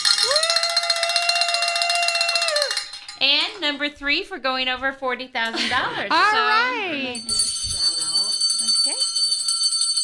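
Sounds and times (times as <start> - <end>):
bell ringing: 0.0 - 3.4, 7.1 - 10.0
speech: 3.6 - 7.5.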